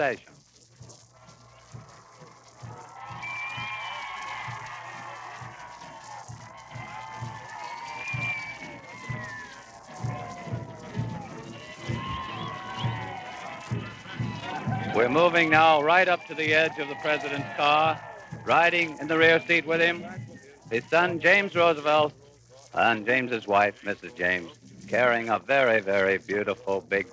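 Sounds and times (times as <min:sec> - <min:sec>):
speech: 0:00.0 - 0:00.4, 0:15.0 - 0:22.2, 0:22.8 - 0:27.1
crowd cheering for passing president: 0:00.0 - 0:27.1.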